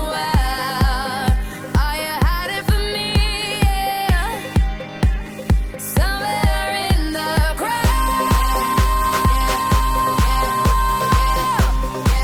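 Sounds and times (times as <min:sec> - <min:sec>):
commercial hip-hop music solo: 0:00.0 - 0:12.2.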